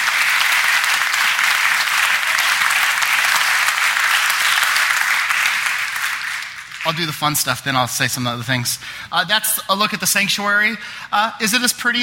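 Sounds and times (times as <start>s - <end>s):
audience clapping: 0.0s - 7.7s
speech: 6.8s - 12.0s.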